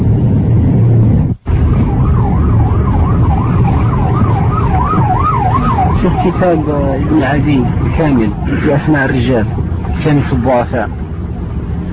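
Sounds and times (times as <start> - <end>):
dense rush-hour traffic rumbling with engine drone: 0.0 - 11.9
emergency siren wailing: 1.4 - 11.9
speech: 6.4 - 11.0.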